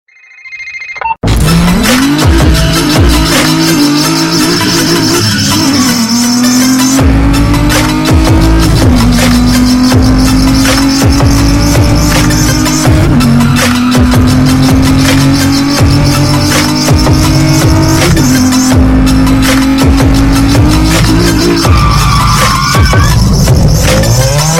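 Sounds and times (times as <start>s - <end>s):
mega bass: 1.2s - 24.5s.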